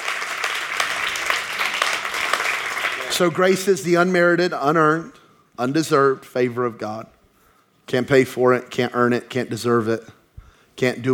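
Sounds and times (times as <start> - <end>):
audience clapping hands: 0.0 - 3.8
speech: 3.2 - 7.2, 7.9 - 10.2, 10.8 - 11.1.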